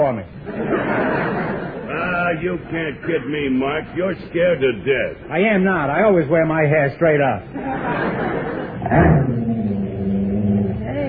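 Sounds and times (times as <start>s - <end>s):
speech: 0.1s - 0.6s, 2.3s - 8.3s, 8.9s - 9.3s
laughter: 0.4s - 3.5s, 7.5s - 9.0s
dog growling: 8.8s - 11.0s.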